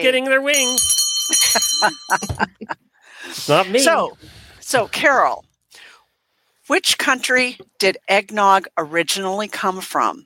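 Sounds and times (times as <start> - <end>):
speech: 0.0 - 5.9, 6.7 - 10.2
bell ringing: 0.5 - 2.7.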